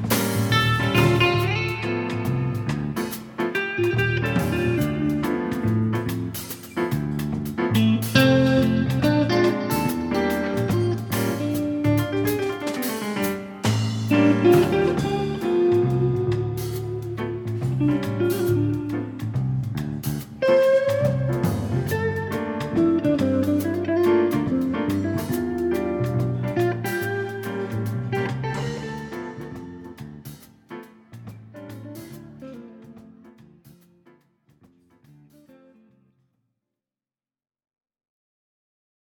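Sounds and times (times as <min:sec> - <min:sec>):
summer reggae music: 0:00.0 - 0:31.0.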